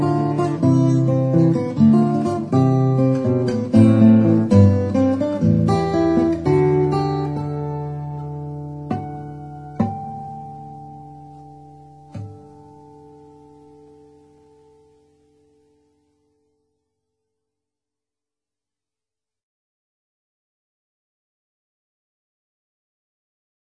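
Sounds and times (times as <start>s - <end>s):
solo acoustic music: 0.0s - 17.3s.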